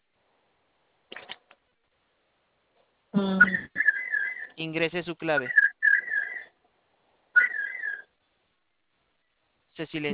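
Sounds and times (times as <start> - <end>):
electronic alarm tones: 3.2 - 4.6, 5.3 - 6.5, 7.4 - 8.1
speech: 4.6 - 5.6, 9.8 - 10.1.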